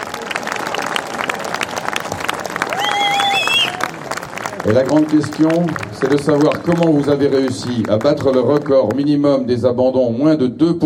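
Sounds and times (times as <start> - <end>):
audience applause: 0.0 - 9.2
high whistles or cheers: 2.7 - 3.9
speech: 4.7 - 10.8.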